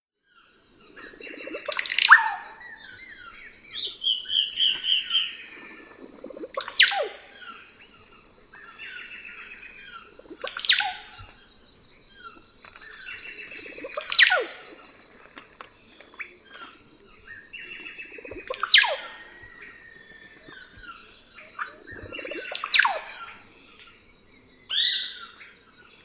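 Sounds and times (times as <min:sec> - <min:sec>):
russet-backed oropendolas calling in a chorus: 0:00.3 - 0:26.0.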